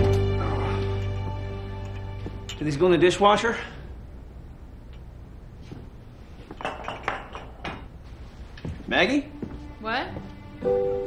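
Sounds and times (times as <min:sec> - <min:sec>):
low hum: 0:00.0 - 0:11.0
speech: 0:02.6 - 0:03.8, 0:09.0 - 0:09.3
empty ceramic mugs clinking as they're carried: 0:06.5 - 0:07.9.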